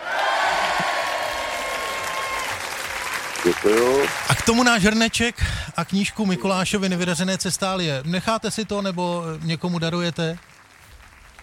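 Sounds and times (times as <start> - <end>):
applause: 0.0 - 5.6, 8.0 - 11.4
speech: 3.4 - 10.5.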